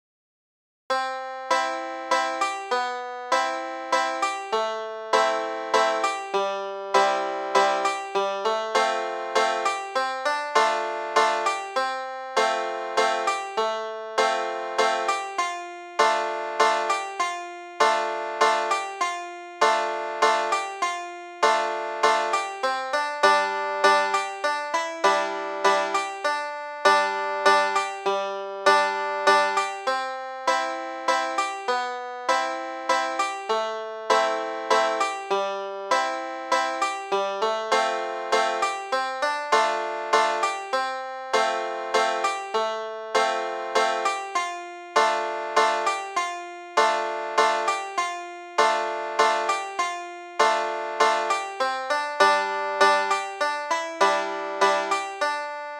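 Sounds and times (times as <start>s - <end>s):
banjo: 0.9s - 55.7s.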